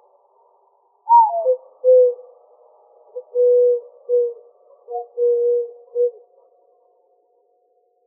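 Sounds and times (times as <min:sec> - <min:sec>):
Eurasian collared dove cooing in Arizona, United States: 0:01.1 - 0:02.2, 0:03.2 - 0:06.2.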